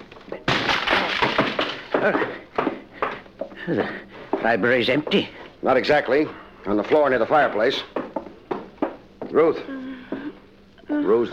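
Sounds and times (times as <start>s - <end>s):
wood cracking and splintering: 0.4s - 2.2s
wooden library door being battered in: 0.4s - 2.2s
speech: 2.0s - 2.4s, 3.7s - 8.0s, 9.3s - 9.8s, 11.1s - 11.3s.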